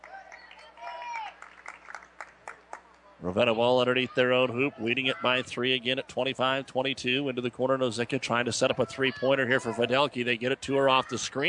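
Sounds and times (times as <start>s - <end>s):
basketball fans applauding in a gym: 0.0s - 2.9s
speech: 3.2s - 11.4s.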